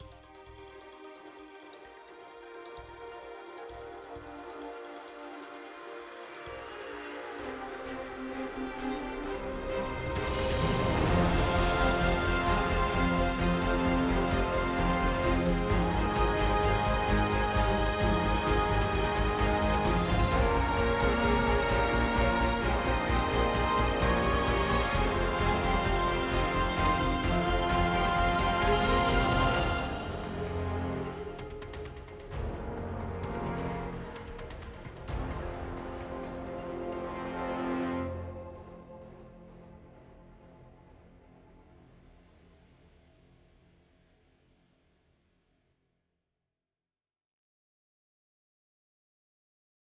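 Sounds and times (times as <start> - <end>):
in-game battle start music: 2.7 - 38.9.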